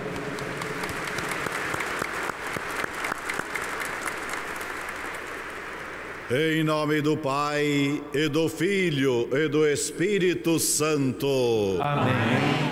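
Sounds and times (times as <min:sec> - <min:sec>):
warm round of applause: 0:00.0 - 0:06.2
speech: 0:06.3 - 0:12.6.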